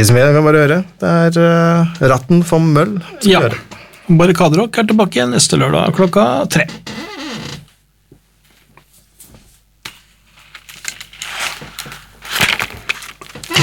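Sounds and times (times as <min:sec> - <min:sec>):
speech: 0:00.0 - 0:07.1
chair creaking: 0:06.0 - 0:07.8, 0:10.4 - 0:13.6.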